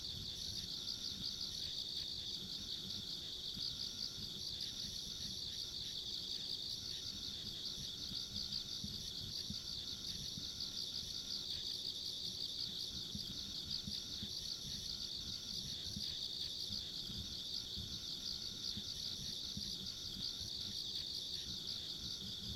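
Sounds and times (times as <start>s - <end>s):
crickets trilling in chorus: 0.0s - 22.5s.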